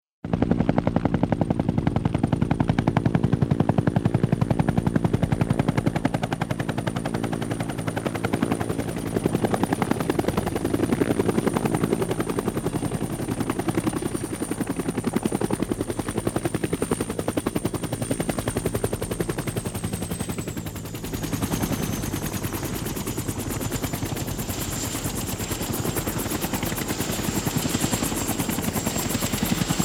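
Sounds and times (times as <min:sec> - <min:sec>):
helicopter: 0:00.2 - 0:29.8.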